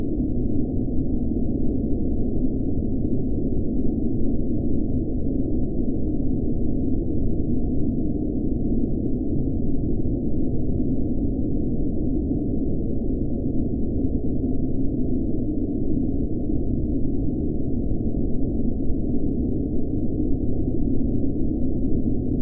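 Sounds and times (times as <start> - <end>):
cold blizzard wind constant droning: 0.0 - 22.4.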